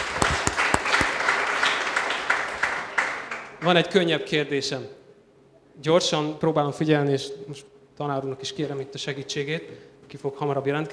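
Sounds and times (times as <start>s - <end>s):
audience applause: 0.0s - 3.8s
speech: 3.6s - 5.0s, 5.8s - 10.9s.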